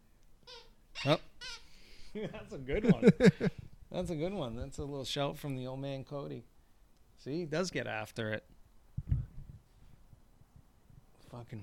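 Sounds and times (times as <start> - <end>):
squeaky toy being squeezed: 0.4 - 1.8
speech: 1.0 - 6.5, 7.2 - 8.6, 11.4 - 11.6.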